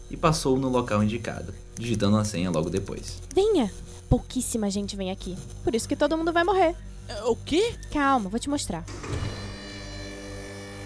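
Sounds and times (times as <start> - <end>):
speech: 0.1 - 9.3
loud sliding door opening: 8.9 - 9.8.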